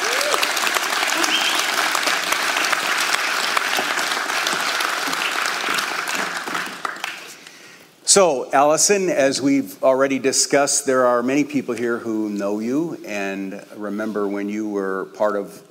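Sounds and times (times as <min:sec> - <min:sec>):
church congregation applauding to welcome a woman being ordained: 0:00.0 - 0:07.7
speech: 0:08.2 - 0:15.6.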